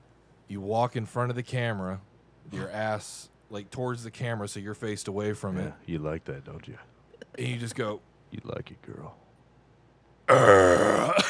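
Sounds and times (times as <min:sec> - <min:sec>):
speech: 0:00.5 - 0:09.2, 0:10.3 - 0:11.2
loud burp: 0:10.3 - 0:11.2.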